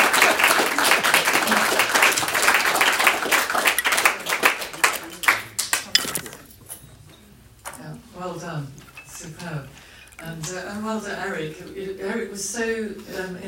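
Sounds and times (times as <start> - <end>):
audience applause: 0.0 - 6.3
speech: 11.5 - 13.4.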